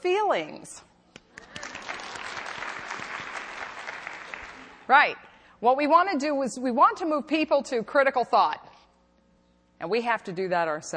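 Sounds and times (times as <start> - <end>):
speech: 0.3 - 0.9, 4.9 - 8.7, 9.8 - 10.9
audience applause: 1.4 - 4.9.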